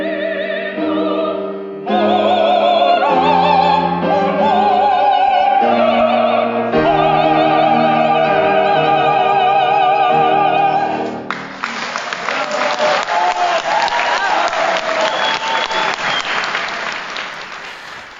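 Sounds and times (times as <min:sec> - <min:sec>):
opera aria singing with orchestra at a Croatian opera evening in Sydney: 0:00.0 - 0:11.3
audience ovation at a Croatian opera evening in Sydney: 0:11.3 - 0:18.1.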